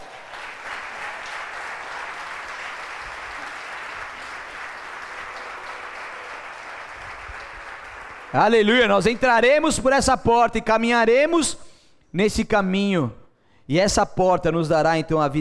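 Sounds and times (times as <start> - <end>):
audience applauding: 0.0 - 9.4
speech: 8.3 - 15.4.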